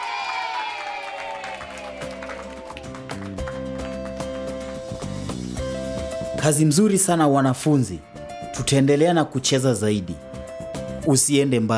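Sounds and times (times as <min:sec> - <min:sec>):
students cheering in a dance class: 0:00.0 - 0:03.1
students clapping in a dance class: 0:00.0 - 0:04.7
speech: 0:06.4 - 0:10.2, 0:11.1 - 0:11.7.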